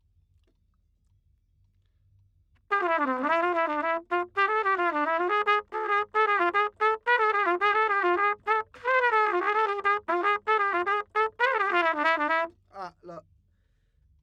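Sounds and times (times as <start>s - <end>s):
trumpet: 2.7s - 12.6s.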